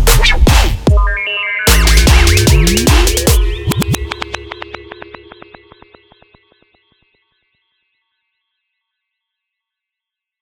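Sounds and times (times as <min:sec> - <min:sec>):
hybrid trap music: 0:00.0 - 0:06.2.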